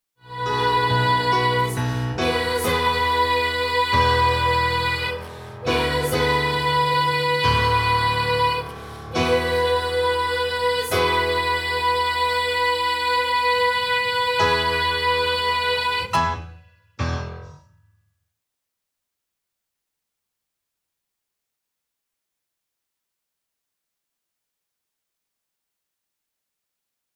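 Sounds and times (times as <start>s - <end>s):
music: 0.2s - 18.0s.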